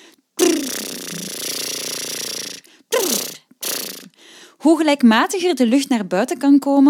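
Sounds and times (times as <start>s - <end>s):
lip trills: 0.4s - 4.2s
speech: 4.6s - 6.8s.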